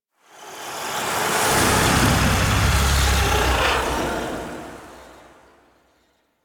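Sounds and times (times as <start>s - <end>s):
transition stinger: 1.4s - 5.5s.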